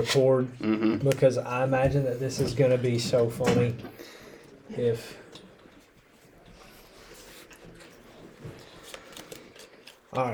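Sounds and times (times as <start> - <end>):
speech: 0.0 - 5.2, 10.2 - 10.3
playing cards shuffling: 8.4 - 10.3.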